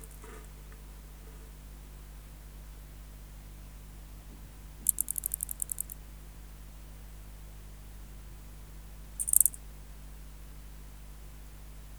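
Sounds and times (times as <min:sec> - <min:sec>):
grasshopper stridulation: 0:00.0 - 0:00.2, 0:04.8 - 0:06.0, 0:09.2 - 0:09.6
low background hum: 0:00.0 - 0:11.9.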